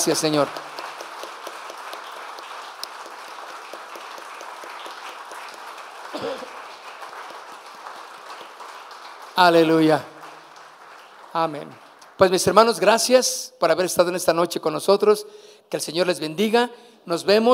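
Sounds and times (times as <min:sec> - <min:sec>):
speech: 0:00.0 - 0:00.7, 0:09.4 - 0:10.1, 0:11.4 - 0:17.5
audience applause: 0:00.0 - 0:12.6.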